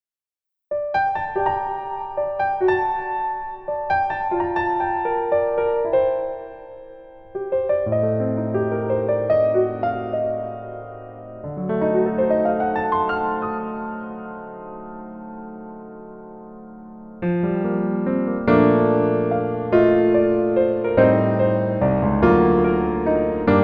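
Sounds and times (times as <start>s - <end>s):
piano melody backing track: 0.7s - 23.6s.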